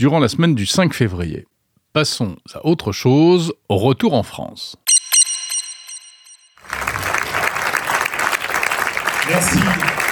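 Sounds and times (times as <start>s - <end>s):
speech: 0.0s - 4.8s, 9.3s - 10.0s
audience applause at the Freebox product launch: 6.6s - 10.0s.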